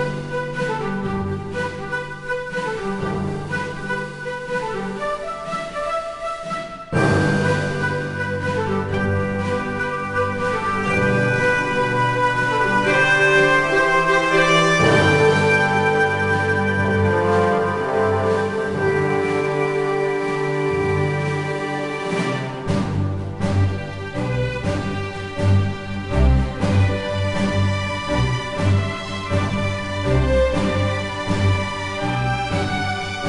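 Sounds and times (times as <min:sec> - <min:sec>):
game music: 0:00.0 - 0:33.2.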